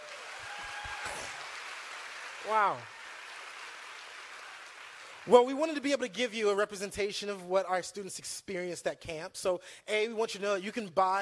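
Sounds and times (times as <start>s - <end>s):
audience applause: 0.0s - 5.6s
speech: 2.4s - 3.0s, 5.2s - 11.1s.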